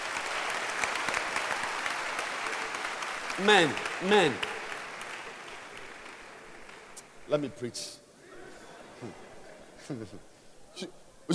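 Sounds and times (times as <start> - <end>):
audience clapping: 0.0 - 7.4
speech: 3.4 - 4.5, 7.3 - 8.0, 9.0 - 9.2, 9.9 - 11.3.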